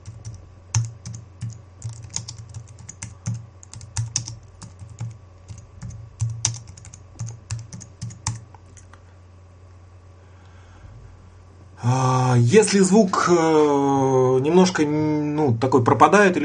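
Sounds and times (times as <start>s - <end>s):
typing on a computer keyboard: 0.0s - 8.9s
speech: 11.9s - 16.4s.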